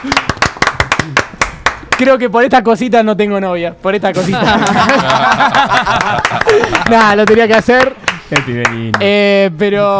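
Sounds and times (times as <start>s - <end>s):
speech: 0.0s - 0.3s, 2.0s - 9.9s
brisk sharp clapping: 0.0s - 2.1s, 4.6s - 9.2s
laughter: 4.2s - 7.4s.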